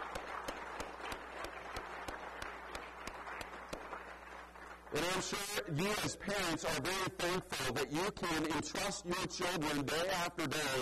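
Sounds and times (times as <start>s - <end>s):
audience applause: 0.0s - 5.6s
speech: 5.0s - 10.7s.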